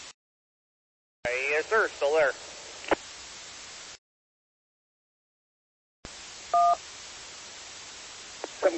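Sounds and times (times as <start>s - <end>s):
speech: 1.2s - 2.5s
radio static: 1.3s - 3.2s, 8.4s - 8.7s
radio two-tone roger beep: 6.6s - 6.8s.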